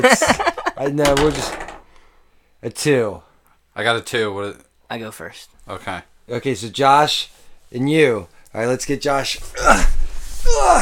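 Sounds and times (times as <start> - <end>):
speech: 0.0 - 1.6, 2.6 - 10.8
dice rolling: 1.0 - 1.8.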